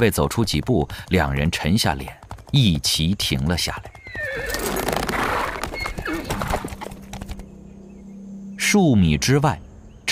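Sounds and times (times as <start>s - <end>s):
speech: 0.0s - 4.7s, 8.7s - 10.1s
horse hoof clops: 0.0s - 7.4s
horse neighing: 3.9s - 7.1s.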